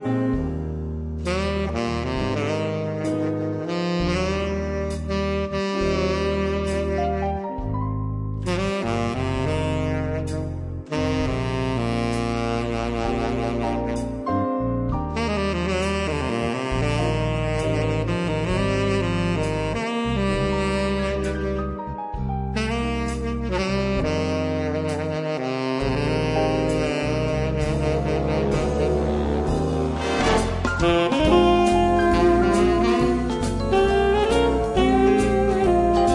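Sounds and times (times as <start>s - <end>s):
jazz solo: 0.0s - 36.1s.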